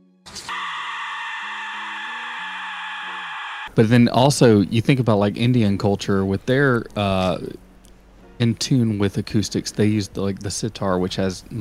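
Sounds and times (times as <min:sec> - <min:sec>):
Aztec death whistle: 0:00.3 - 0:03.7
speech: 0:03.8 - 0:07.6, 0:08.4 - 0:11.5.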